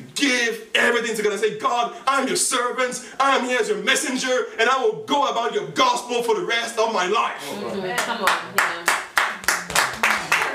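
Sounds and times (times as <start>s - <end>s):
speech: 0.5s - 8.9s
half-hearted audience clapping: 7.9s - 10.5s.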